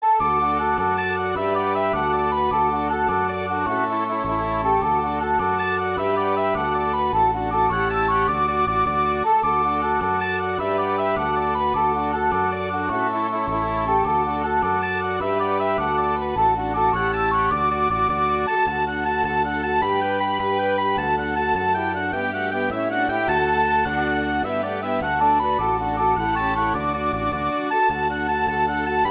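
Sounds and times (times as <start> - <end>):
Irish jig music: 0.0 - 29.0.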